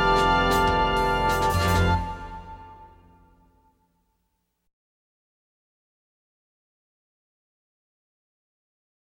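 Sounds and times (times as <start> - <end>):
clarinet playing jazz: 0.0 - 3.7.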